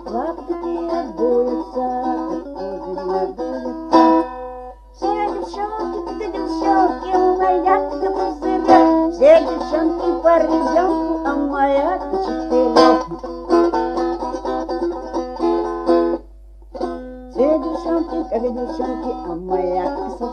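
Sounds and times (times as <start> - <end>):
chastushki singing: 0.0 - 4.2, 5.0 - 13.7, 17.4 - 20.3
balalaika playing: 0.0 - 20.3.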